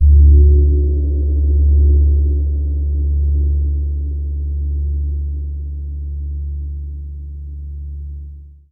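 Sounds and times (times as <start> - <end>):
gong: 0.0 - 6.8.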